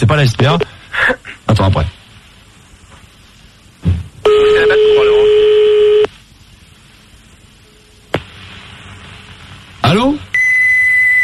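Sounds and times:
speech: 0:00.0 - 0:02.0
fax machine tones on a phone line: 0:04.2 - 0:06.1, 0:10.3 - 0:11.2.

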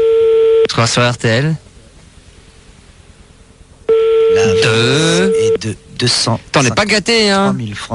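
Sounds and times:
telephone ringing tone: 0:00.0 - 0:00.7, 0:03.9 - 0:05.6
speech: 0:00.8 - 0:01.6, 0:05.6 - 0:07.9.

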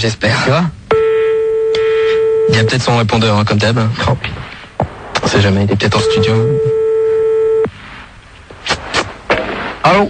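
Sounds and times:
speech: 0:00.0 - 0:00.8, 0:02.5 - 0:04.4, 0:05.3 - 0:06.8, 0:09.8 - 0:10.0
dialing signal bursts while calling a number: 0:00.9 - 0:02.8, 0:05.9 - 0:07.7
telephone line tone: 0:00.9 - 0:02.8, 0:05.9 - 0:07.7.

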